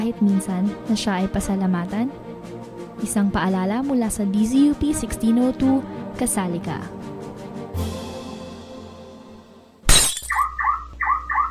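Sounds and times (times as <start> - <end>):
speech: 0.0 - 7.0
car window glass smashed during theft: 9.8 - 10.5
rising electronic chirps of a car alarm: 10.3 - 11.5.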